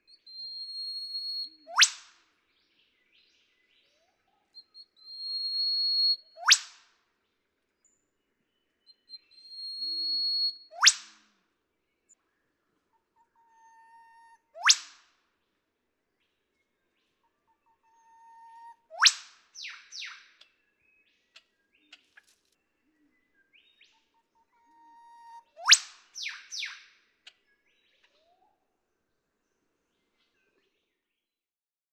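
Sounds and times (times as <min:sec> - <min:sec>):
Eastern Whipbird singing: 0:00.0 - 0:06.6, 0:07.2 - 0:10.9, 0:16.1 - 0:31.0.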